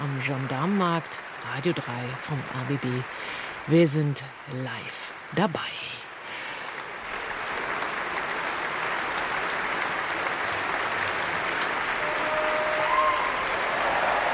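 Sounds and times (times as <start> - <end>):
large concert audience applause: 0.0 - 5.4, 6.1 - 14.3
speech: 0.2 - 5.9.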